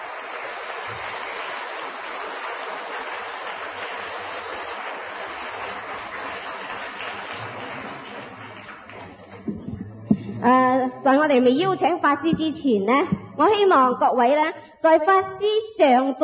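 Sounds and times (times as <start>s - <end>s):
audience applause: 0.0s - 9.9s
speech: 10.4s - 16.2s.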